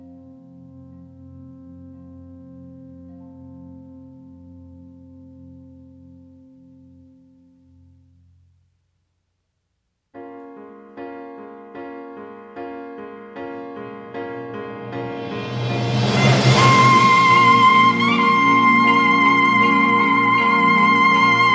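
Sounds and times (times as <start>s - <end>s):
saxophone: 15.9s - 21.5s.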